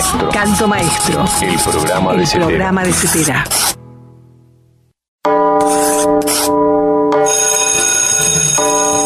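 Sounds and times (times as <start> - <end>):
speech: 0.1 - 3.8
bell ringing: 5.3 - 9.0.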